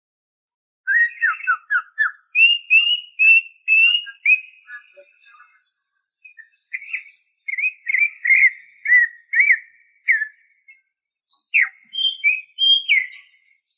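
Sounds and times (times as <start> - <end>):
greater green leafbird song: 0.9 - 13.7.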